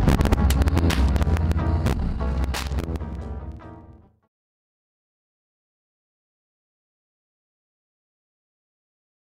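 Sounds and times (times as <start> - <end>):
jazzy music: 0.0 - 4.1.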